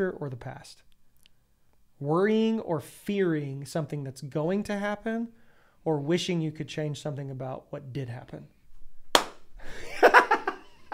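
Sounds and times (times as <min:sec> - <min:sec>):
speech: 0:00.0 - 0:00.9, 0:02.0 - 0:08.6
hand clap: 0:09.1 - 0:09.5
laughter: 0:09.7 - 0:10.9.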